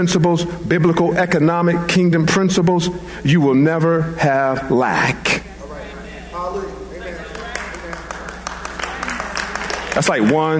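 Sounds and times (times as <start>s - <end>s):
speech: 0.0s - 5.5s, 10.0s - 10.5s
soft, polite audience clapping: 7.0s - 10.5s.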